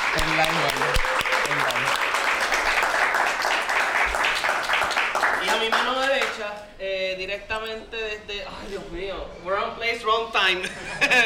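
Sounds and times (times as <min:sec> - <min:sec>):
crowd applause: 0:00.0 - 0:06.3
speech: 0:00.2 - 0:02.1, 0:05.5 - 0:11.2.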